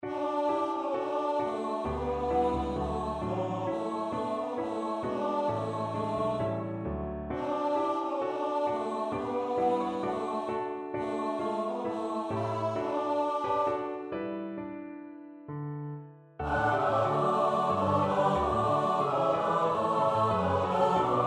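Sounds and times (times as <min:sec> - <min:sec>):
SATB choir part practice: 0:00.0 - 0:14.3, 0:16.4 - 0:21.2.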